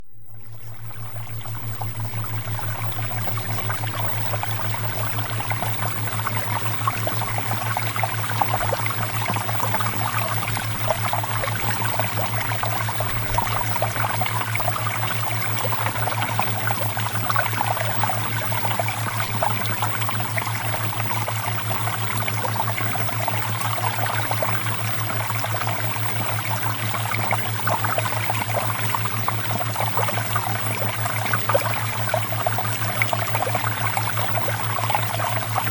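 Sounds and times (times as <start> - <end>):
flowing water: 0.0 - 35.6.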